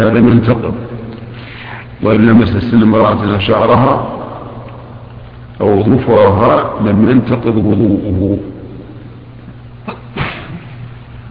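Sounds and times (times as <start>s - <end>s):
speech: 0.0s - 0.9s, 2.0s - 4.1s, 5.6s - 8.5s
low hum: 0.0s - 11.2s
sneeze: 9.9s - 10.8s.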